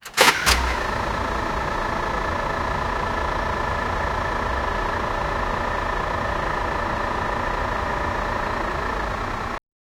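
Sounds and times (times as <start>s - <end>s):
truck engine starting: 0.0s - 9.6s.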